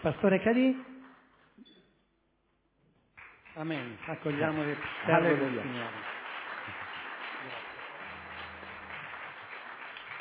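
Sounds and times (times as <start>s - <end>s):
speech: 0.0s - 1.0s, 3.6s - 6.1s
weak audience applause: 3.1s - 10.1s.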